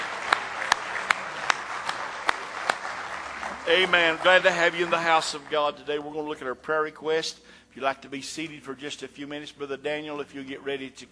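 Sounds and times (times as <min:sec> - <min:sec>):
audience hand clapping: 0:00.0 - 0:06.2
speech: 0:03.7 - 0:11.1.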